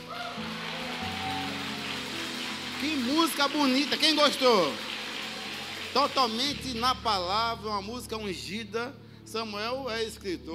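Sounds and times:
audience applause: 0.0s - 6.9s
speech: 2.8s - 4.9s, 6.0s - 10.5s.

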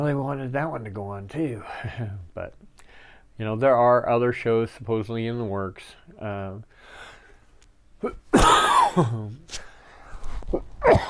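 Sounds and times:
speech: 0.0s - 2.8s, 3.4s - 7.1s, 8.0s - 9.7s, 10.5s - 11.0s
person coughing: 8.0s - 9.4s, 10.5s - 11.0s.

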